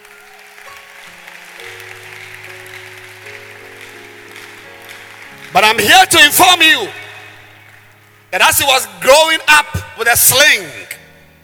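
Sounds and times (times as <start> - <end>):
audience clapping: 0.0 - 8.3
speech: 5.8 - 7.0, 8.3 - 10.8.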